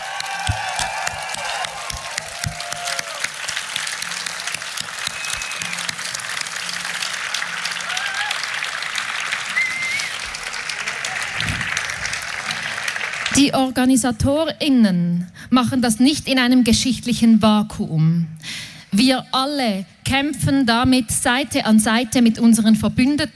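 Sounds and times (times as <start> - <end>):
crowd applause: 0.0 - 13.5
speech: 13.4 - 23.3.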